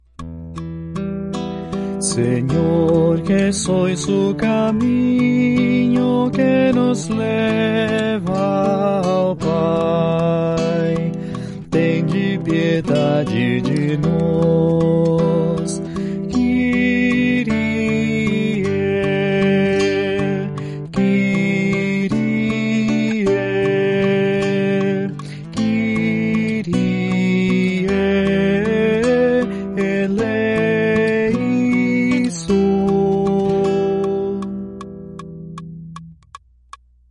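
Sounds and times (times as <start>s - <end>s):
tenor singing: 2.0s - 34.8s.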